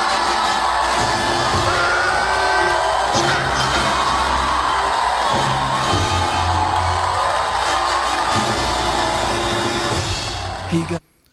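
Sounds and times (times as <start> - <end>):
movie theater crowd cheering: 0.0 - 11.0.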